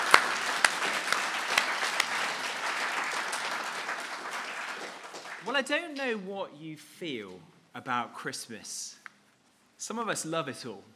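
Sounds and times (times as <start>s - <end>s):
audience applause: 0.0s - 5.5s
speech: 5.6s - 9.0s, 9.8s - 10.9s.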